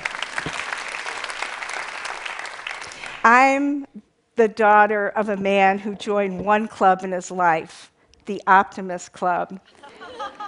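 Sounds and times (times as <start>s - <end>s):
audience applause: 0.0s - 3.2s
speech: 3.2s - 10.4s
laughter: 9.7s - 10.4s.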